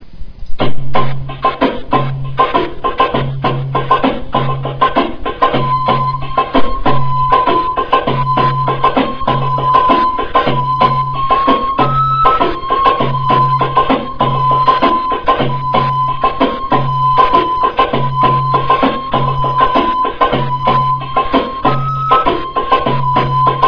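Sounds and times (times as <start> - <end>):
drums: 0.0 - 23.6.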